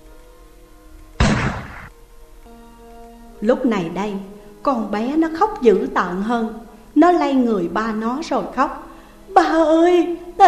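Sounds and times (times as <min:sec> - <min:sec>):
gunshot: 0:01.2 - 0:01.9
speech: 0:03.4 - 0:10.4.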